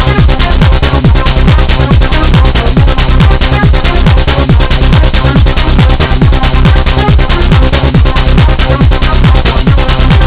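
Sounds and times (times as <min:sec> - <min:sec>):
techno music: 0:00.0 - 0:10.2.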